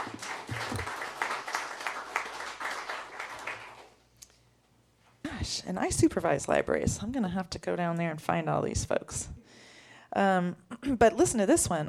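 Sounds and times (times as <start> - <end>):
audience applause: 0.0 - 3.9
speech: 5.4 - 9.4, 10.1 - 11.8.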